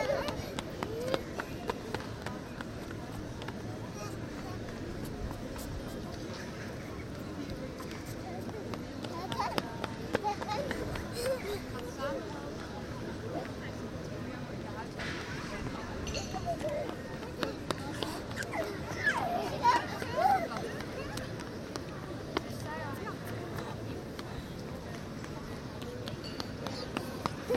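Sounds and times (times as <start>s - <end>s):
chatter of many voices on the Plein in The Hague: 0.0s - 27.5s.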